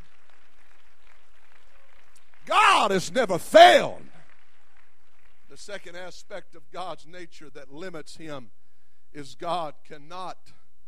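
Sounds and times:
audience clapping hands in praise: 0.0 - 6.0
speech: 2.8 - 4.0, 5.6 - 10.6.

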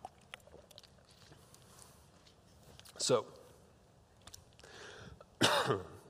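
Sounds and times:
speech: 3.0 - 3.4, 5.7 - 5.9
harsh cough: 5.4 - 6.0
person clearing throat after choking: 5.4 - 6.0.

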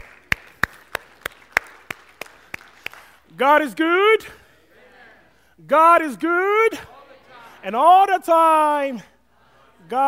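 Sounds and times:
audience clapping: 0.0 - 3.4
speech: 3.4 - 4.4, 5.6 - 6.9, 7.6 - 9.1, 9.9 - 10.0.

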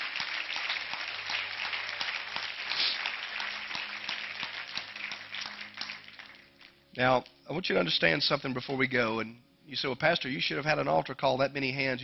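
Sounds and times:
audience hand clapping: 0.0 - 6.9
speech: 7.0 - 12.0.

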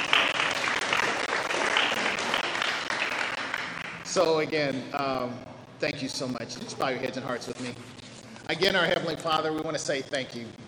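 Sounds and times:
crowd applauding: 0.0 - 4.2
speech: 4.2 - 10.6.

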